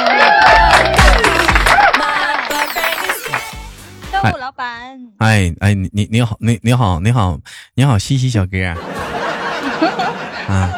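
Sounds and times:
loud applause and cheering: 0:00.0 - 0:03.8
speech: 0:04.2 - 0:09.2, 0:09.8 - 0:10.7
laughter: 0:08.6 - 0:10.7.

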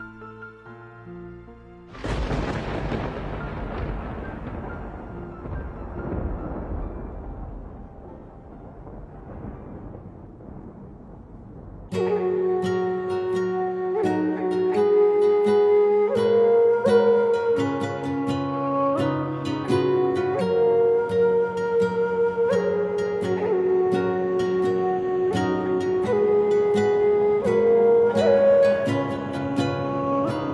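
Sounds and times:
gentle music with a sustained melody: 0:00.0 - 0:30.5
deep rolling thunderclap from a summer storm: 0:01.9 - 0:12.3.

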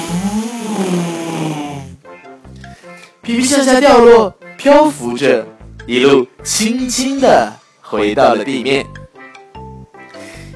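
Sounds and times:
loud fart sound effect: 0:00.0 - 0:02.0
speech: 0:03.3 - 0:09.0.

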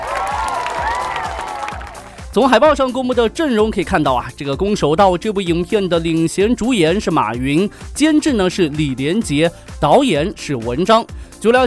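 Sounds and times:
applause: 0:00.0 - 0:02.3
speech: 0:02.4 - 0:11.6.

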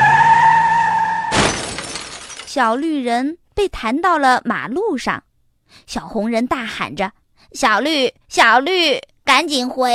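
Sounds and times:
car crashing into a house: 0:00.0 - 0:02.6
speech: 0:02.6 - 0:09.9.

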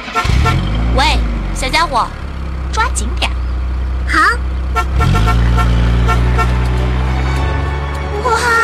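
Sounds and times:
car driving off fast with engine revving: 0:00.0 - 0:08.6
speech: 0:01.7 - 0:02.2, 0:02.8 - 0:03.3, 0:04.1 - 0:06.6, 0:08.2 - 0:08.6
horn-like tonal bursts: 0:04.7 - 0:08.2.

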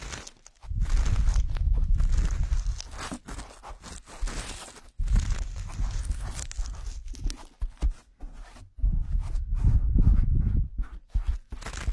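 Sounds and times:
crackles and clicks: 0:00.0 - 0:07.6, 0:11.5 - 0:11.9
ear cleaning scratchy rubbing and scraping: 0:00.0 - 0:11.9.

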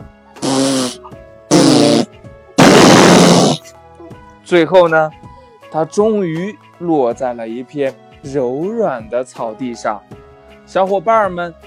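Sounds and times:
cartoon fart sound effect: 0:00.4 - 0:03.6
speech: 0:04.5 - 0:11.6.

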